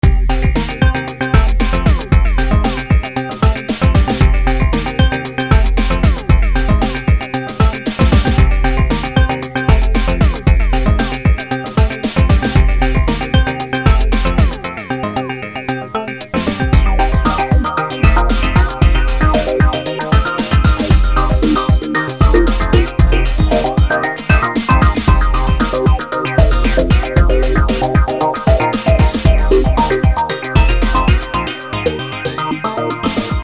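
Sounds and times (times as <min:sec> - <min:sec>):
funk music: 0:00.0 - 0:33.4.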